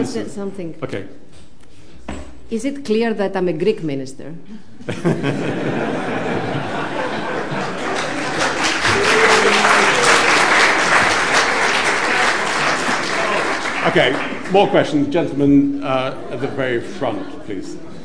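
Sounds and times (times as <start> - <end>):
speech: 0.0 - 1.4, 2.5 - 6.1, 13.8 - 17.9
laughter: 4.8 - 14.3, 15.9 - 18.0
large audience applause: 5.8 - 15.1.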